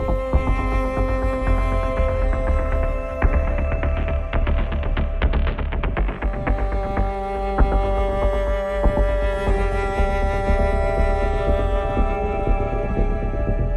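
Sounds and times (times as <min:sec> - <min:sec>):
aggressive strings: 0:00.0 - 0:13.7.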